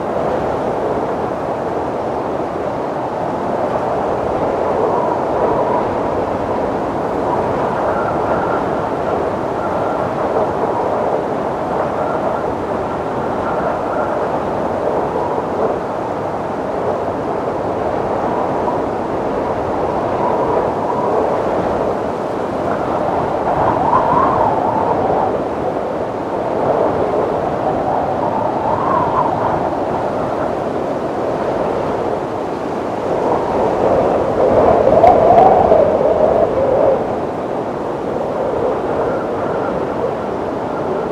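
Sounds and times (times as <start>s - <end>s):
storm wind: 0.0s - 41.1s.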